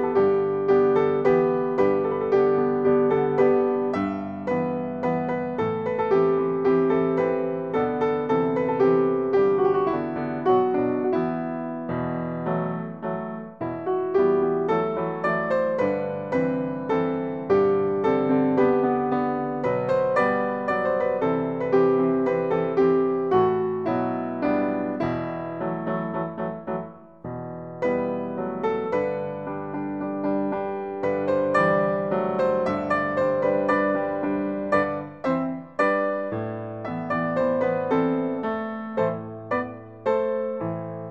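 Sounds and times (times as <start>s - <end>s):
Afghan melody on piano: 0.0s - 41.0s.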